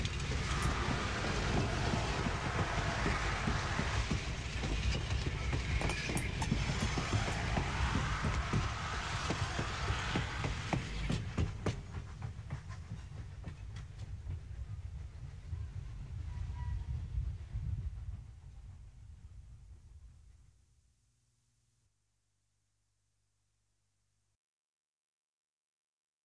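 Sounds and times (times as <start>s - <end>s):
steam train passing: 0.0s - 19.8s.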